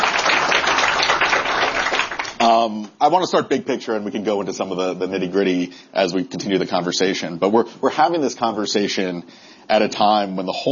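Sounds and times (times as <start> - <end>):
audience applause at a panel discussion event: 0.0 - 2.4
speech: 2.6 - 10.7.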